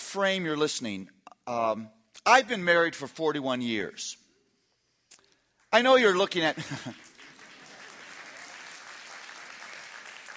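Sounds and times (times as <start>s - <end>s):
speech: 0.1s - 4.2s, 5.7s - 7.1s
audience applause: 6.9s - 10.3s.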